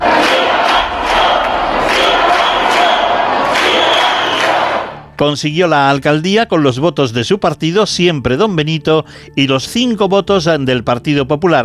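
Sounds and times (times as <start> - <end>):
crowd shouting in a council chamber: 0.0 - 5.1
speech: 5.2 - 11.6.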